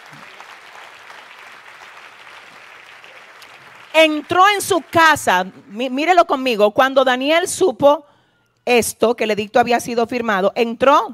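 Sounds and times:
audience applause: 0:00.0 - 0:05.7
speech: 0:04.0 - 0:08.1, 0:08.7 - 0:11.1.

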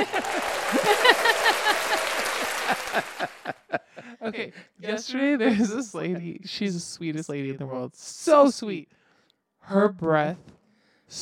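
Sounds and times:
applause button sound effect: 0:00.0 - 0:03.7
laughter: 0:00.0 - 0:06.4
speech: 0:04.5 - 0:09.0, 0:09.6 - 0:10.5, 0:11.1 - 0:11.2.

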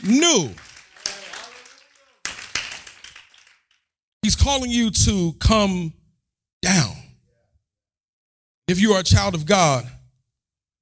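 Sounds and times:
speech: 0:00.0 - 0:00.6, 0:04.3 - 0:06.0, 0:06.6 - 0:07.0, 0:08.7 - 0:10.0
crowd clapping hands: 0:00.0 - 0:03.9.

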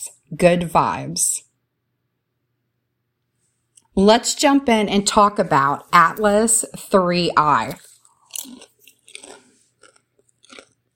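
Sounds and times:
speech: 0:00.3 - 0:01.5, 0:04.0 - 0:08.7
chewing popcorn: 0:07.6 - 0:10.9.

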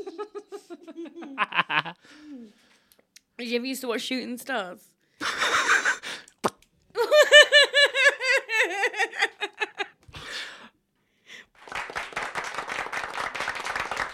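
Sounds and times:
laughter: 0:00.0 - 0:02.0, 0:07.0 - 0:10.0
speech: 0:03.4 - 0:05.4
applause sound effect from soundboard button: 0:11.6 - 0:14.1.

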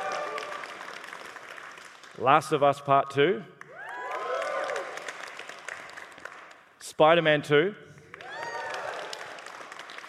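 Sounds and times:
audience applause at a live presentation: 0:00.0 - 0:02.6, 0:03.6 - 0:06.8, 0:08.0 - 0:10.0
speech: 0:02.2 - 0:03.6, 0:07.0 - 0:07.8.

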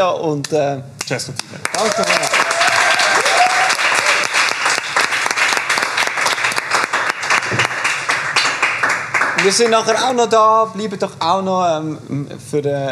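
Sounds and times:
speech: 0:00.0 - 0:02.4, 0:09.4 - 0:12.8
audience applause: 0:01.6 - 0:10.1.

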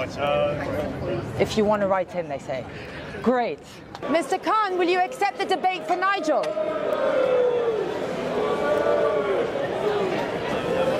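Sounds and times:
speech: 0:00.0 - 0:07.6
crowd booing: 0:04.0 - 0:10.9.

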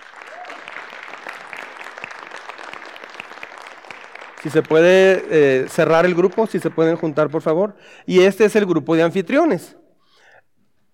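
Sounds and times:
audience applause: 0:00.0 - 0:07.5
speech: 0:04.4 - 0:09.8.

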